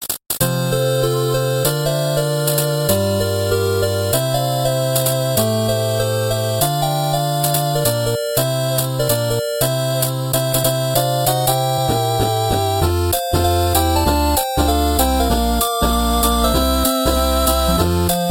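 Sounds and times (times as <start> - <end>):
8-bit chiptune: 0.4 - 18.3.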